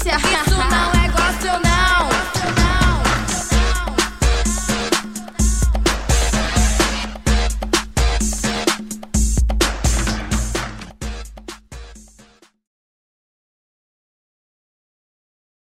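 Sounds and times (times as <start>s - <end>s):
gospel funk music: 0.0s - 12.2s.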